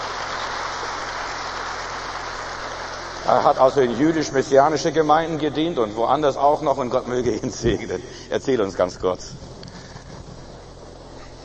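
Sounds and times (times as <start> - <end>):
audience applause: 0.0 - 7.4
speech: 3.2 - 9.5.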